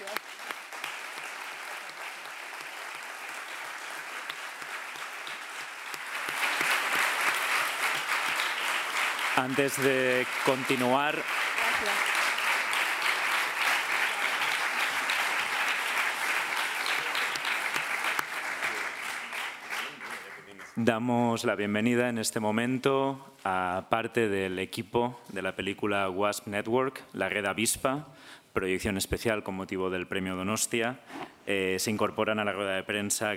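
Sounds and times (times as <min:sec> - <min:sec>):
audience applause: 0:00.0 - 0:20.8
speech: 0:09.4 - 0:12.1, 0:20.8 - 0:33.3.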